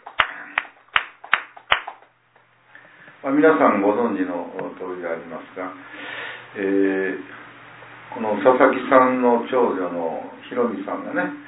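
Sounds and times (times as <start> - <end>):
hand claps: 0.0 - 2.2
faint quieter clapping: 0.0 - 2.5
speech: 3.2 - 7.4, 8.1 - 11.4.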